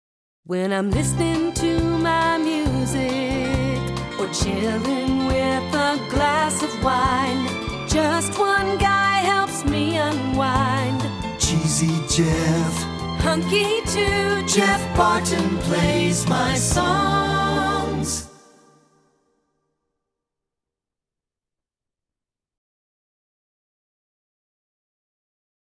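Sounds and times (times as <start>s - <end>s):
song: 1.1s - 18.9s.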